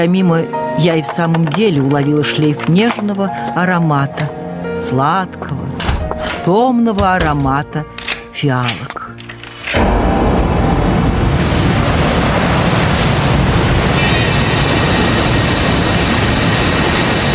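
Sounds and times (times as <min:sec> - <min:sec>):
speech: 0:00.0 - 0:05.7, 0:06.4 - 0:09.0
gusting wind: 0:09.7 - 0:17.3
stormy sea waves crashing: 0:09.8 - 0:17.3.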